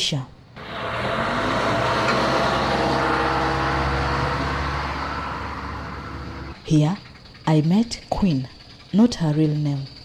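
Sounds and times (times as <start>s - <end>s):
speech: 0.0s - 0.4s, 6.7s - 9.9s
street traffic rumble: 0.4s - 9.8s
motorcycle taxi engine droning: 0.6s - 6.7s.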